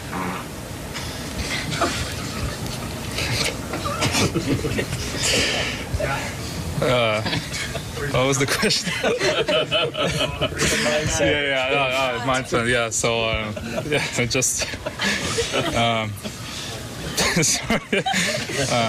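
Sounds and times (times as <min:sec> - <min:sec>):
fart during post-game interview: 0:00.1 - 0:00.5
laughter: 0:01.4 - 0:05.9, 0:06.7 - 0:18.8.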